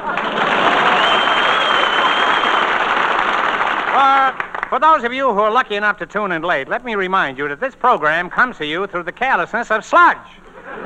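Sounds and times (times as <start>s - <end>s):
studio audience applause: 0.0s - 4.8s
speech: 4.8s - 10.8s.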